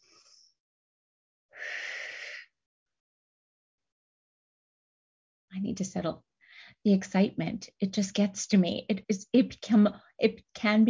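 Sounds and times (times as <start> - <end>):
deep breath taken in during a spring meditation: 1.6 - 2.5, 6.4 - 6.8
speech: 5.6 - 10.8.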